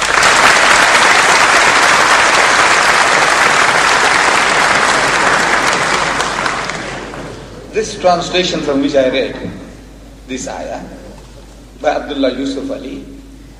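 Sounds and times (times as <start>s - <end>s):
crowd applauding: 0.0s - 7.5s
speech: 7.8s - 9.6s, 10.3s - 11.0s, 11.8s - 13.2s.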